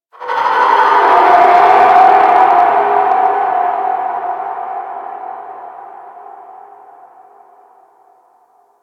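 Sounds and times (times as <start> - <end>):
ambience: 0.1 - 8.8.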